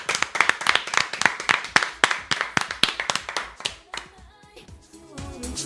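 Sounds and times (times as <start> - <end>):
applause: 0.0 - 4.3.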